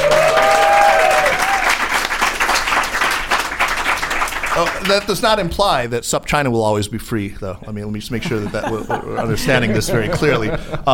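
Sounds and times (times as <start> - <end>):
audience applause: 0.0 - 5.2
speech: 4.8 - 10.9
laughter: 8.2 - 10.9.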